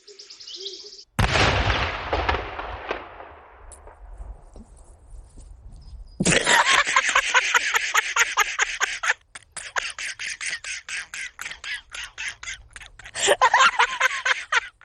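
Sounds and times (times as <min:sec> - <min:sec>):
faint bird chirping: 0:00.0 - 0:01.1, 0:05.7 - 0:06.2
cow exploding: 0:01.2 - 0:04.5
laughter: 0:06.2 - 0:14.8.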